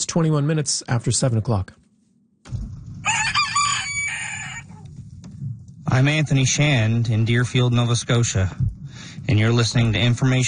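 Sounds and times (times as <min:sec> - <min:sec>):
speech: 0:00.0 - 0:01.9, 0:05.9 - 0:10.4
low rumble: 0:02.5 - 0:10.4
rooster crowing: 0:03.0 - 0:04.8.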